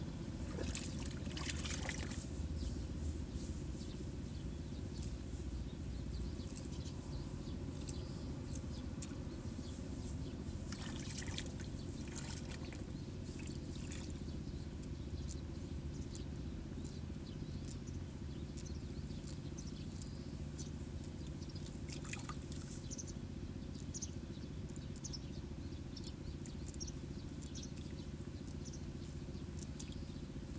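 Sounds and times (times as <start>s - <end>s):
water splashing in a flooded rice nursery: 0.4s - 2.2s, 10.7s - 14.1s
faint sparrow chirps: 0.7s - 30.5s.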